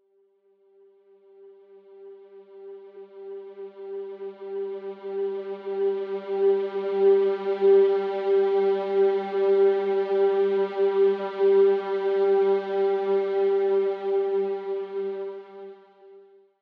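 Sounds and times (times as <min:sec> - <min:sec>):
ambient music: 0:02.9 - 0:16.0.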